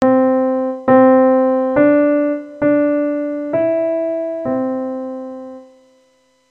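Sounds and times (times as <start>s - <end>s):
melodic dictation pitches: 0.0s - 5.8s.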